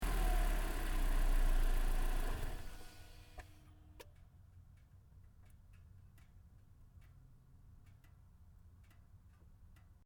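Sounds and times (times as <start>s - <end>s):
Toyota Corolla hatchback engine shutdown in engine bay: 0.0s - 3.6s.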